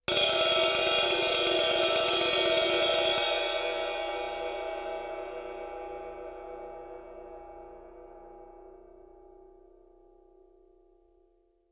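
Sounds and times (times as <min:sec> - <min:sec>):
ride cymbal stick roll on suspended cymbals: 0:00.1 - 0:06.2.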